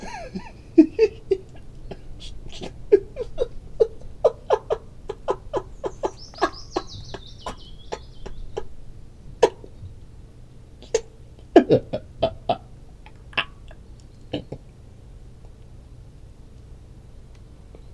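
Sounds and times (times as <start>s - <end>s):
laughing: 0.0s - 9.8s, 10.8s - 14.8s.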